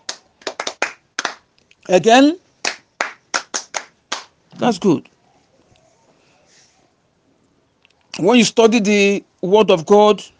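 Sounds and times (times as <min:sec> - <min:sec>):
audience clapping: 0:00.0 - 0:01.5, 0:02.6 - 0:04.3
speech: 0:01.9 - 0:02.4, 0:04.6 - 0:05.1, 0:08.2 - 0:10.3.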